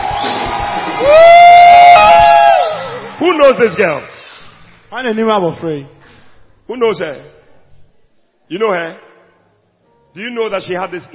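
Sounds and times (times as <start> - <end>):
high sustained whoop: 0.0 - 3.0
audience shouting and cheering: 0.0 - 4.0
speech: 3.3 - 4.1, 4.9 - 6.0, 6.7 - 7.4, 8.5 - 9.1, 10.1 - 11.1.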